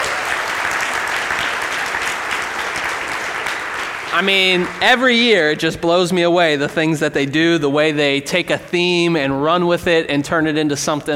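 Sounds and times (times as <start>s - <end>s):
audience applause: 0.0s - 5.6s
speech: 4.2s - 11.1s.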